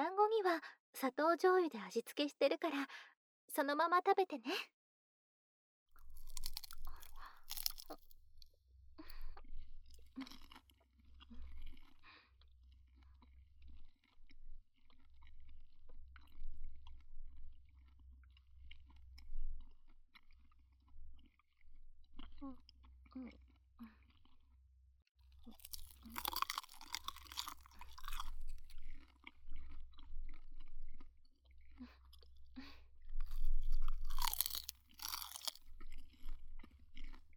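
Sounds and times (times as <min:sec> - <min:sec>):
speech: 0:00.4 - 0:04.8, 0:07.9 - 0:08.1, 0:22.4 - 0:24.0
chewing nori-wrapped rice dumplings: 0:06.0 - 0:08.6, 0:09.4 - 0:17.0, 0:17.7 - 0:21.6, 0:25.3 - 0:32.4, 0:33.2 - 0:37.3.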